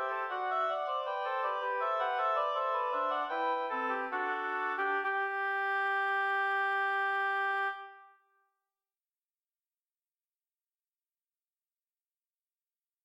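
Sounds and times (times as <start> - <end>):
oboe trio playing a march: 0.0 - 8.0.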